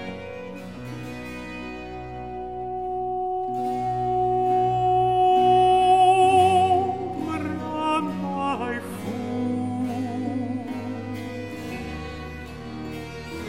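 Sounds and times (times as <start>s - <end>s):
countertenor singing: 2.4s - 12.0s.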